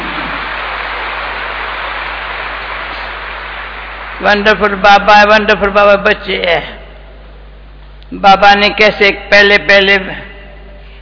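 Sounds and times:
audience clapping at a gathering welcoming Dadi Gulzar: 0.0 - 4.8
speech: 4.2 - 6.8, 8.1 - 10.3.

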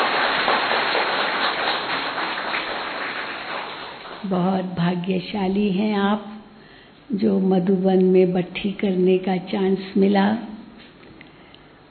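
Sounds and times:
crowd clapping loudly: 0.0 - 4.3
speech: 4.2 - 6.3, 7.1 - 10.5.

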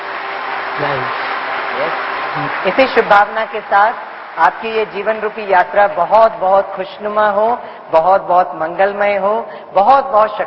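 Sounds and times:
audience applause: 0.0 - 7.0
speech: 1.8 - 10.4.

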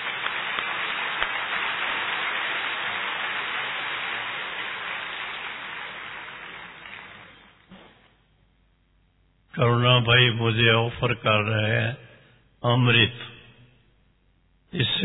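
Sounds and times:
audience clapping: 0.0 - 8.2
speech: 9.6 - 13.3.

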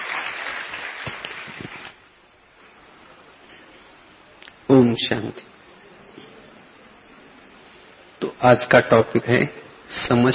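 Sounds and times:
audience applause: 0.0 - 2.0
speech: 4.8 - 5.6, 8.4 - 10.3.

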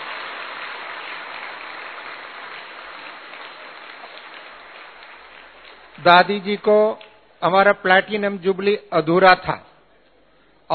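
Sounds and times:
audience applause: 0.0 - 6.2
speech: 6.0 - 9.7.

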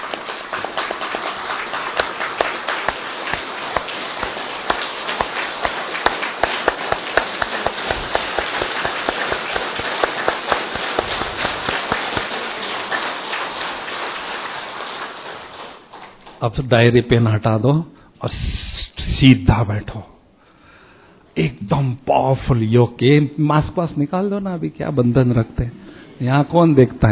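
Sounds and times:
crowd clapping: 0.0 - 16.5
speech: 16.4 - 20.1, 21.6 - 27.1.

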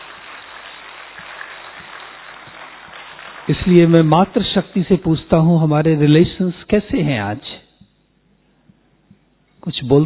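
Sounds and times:
audience applause: 0.0 - 4.6
speech: 3.5 - 7.6, 9.6 - 10.0.

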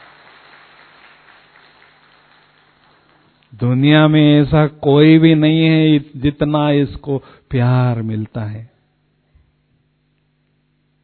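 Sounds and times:
audience clapping: 0.0 - 3.6
speech: 3.5 - 8.7.

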